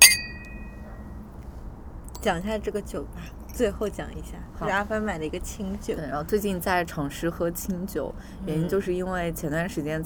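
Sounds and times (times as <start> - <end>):
glasses clinking in a toast: 0.0 - 0.8
speech: 2.2 - 10.0.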